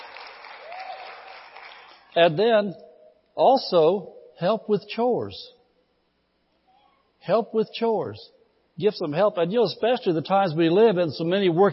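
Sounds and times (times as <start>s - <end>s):
audience applause: 0.0s - 2.1s
speech: 2.2s - 2.8s, 3.4s - 5.6s, 7.2s - 11.7s.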